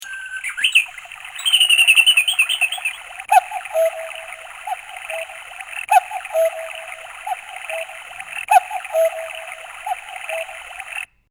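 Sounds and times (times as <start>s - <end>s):
cuckoo calling: 0.0s - 11.1s.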